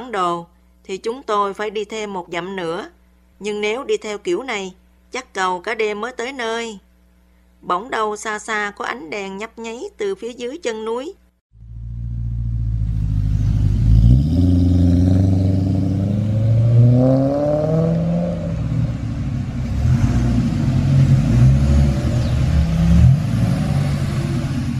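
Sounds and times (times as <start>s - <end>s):
speech: 0.1s - 6.8s, 7.6s - 11.2s, 17.0s - 17.2s
truck approaching: 11.6s - 24.7s.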